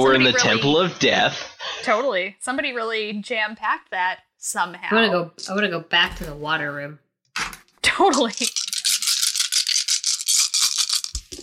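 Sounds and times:
speech: 0:00.0 - 0:08.6
many small dice shaken in a container: 0:08.1 - 0:11.4.

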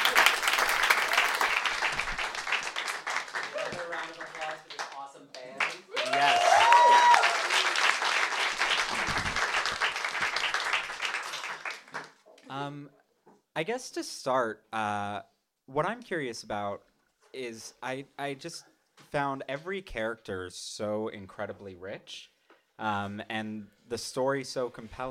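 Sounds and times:
audience applause: 0:00.0 - 0:12.2
speech: 0:13.6 - 0:25.0.

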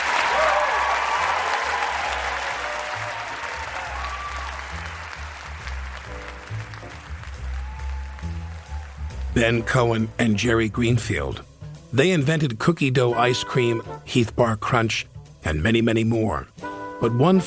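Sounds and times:
crowd applause: 0:00.0 - 0:09.6
faint cheering: 0:00.0 - 0:10.1
speech: 0:09.4 - 0:17.4.

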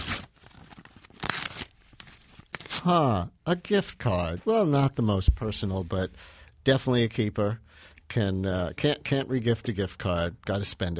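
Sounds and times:
envelope being torn open: 0:00.0 - 0:02.9
speech: 0:02.8 - 0:10.9.

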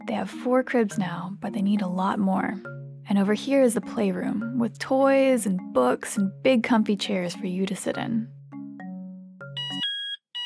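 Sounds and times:
speech: 0:00.0 - 0:08.4
door alarm: 0:09.6 - 0:10.4.

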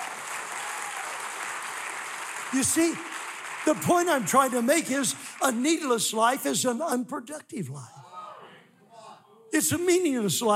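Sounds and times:
audience applause: 0:00.0 - 0:05.9
speech: 0:02.5 - 0:08.0, 0:09.6 - 0:10.5.

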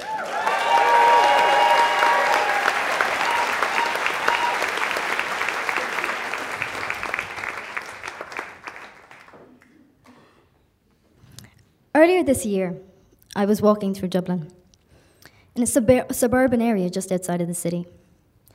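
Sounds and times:
cheers: 0:00.0 - 0:08.9
audience applauding a speaker coming onto the stage at a storytelling event: 0:00.0 - 0:09.8
speech: 0:12.2 - 0:14.6, 0:15.6 - 0:18.0.

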